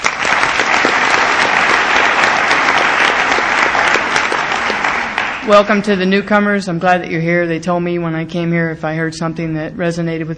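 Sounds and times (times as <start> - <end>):
applause at an Al-Anon recovery meeting: 0.0 - 5.9
speech: 5.5 - 10.3.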